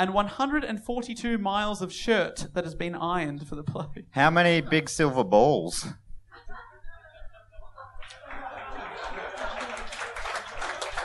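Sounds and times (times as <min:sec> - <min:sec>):
speech: 0:00.0 - 0:06.0
laughter: 0:06.2 - 0:11.0
light applause from a small crowd: 0:08.0 - 0:11.0.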